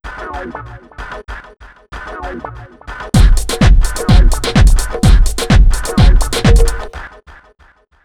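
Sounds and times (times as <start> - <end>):
disco house music: 3.2 - 7.0.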